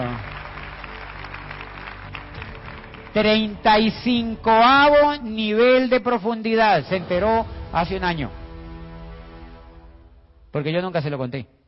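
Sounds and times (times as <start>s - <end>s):
audience applause: 0.0s - 4.2s
speech: 3.1s - 8.4s, 10.5s - 11.6s.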